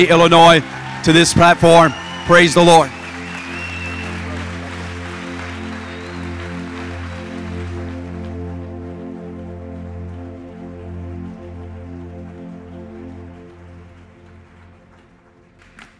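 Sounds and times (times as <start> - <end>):
speech: 0.0 - 3.0
sustained keyboard chords: 0.0 - 15.6
church congregation applauding a visiting pastor: 0.0 - 15.9.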